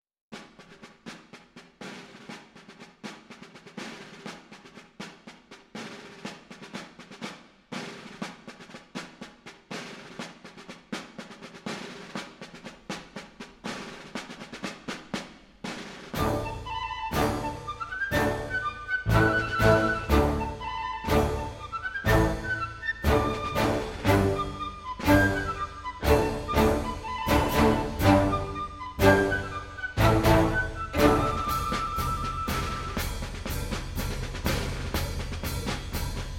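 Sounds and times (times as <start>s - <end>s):
fife and drum march: 0.3s - 36.3s.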